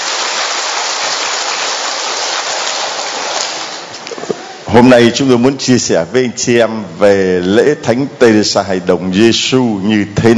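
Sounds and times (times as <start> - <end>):
big round of applause: 0.0 - 3.9
speech: 4.7 - 10.3.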